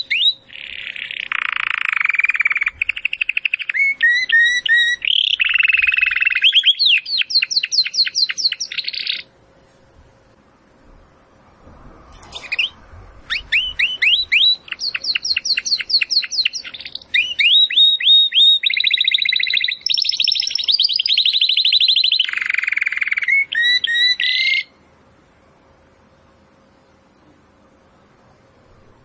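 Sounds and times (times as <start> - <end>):
domestic canary singing: 0.0 - 9.3, 12.3 - 24.8.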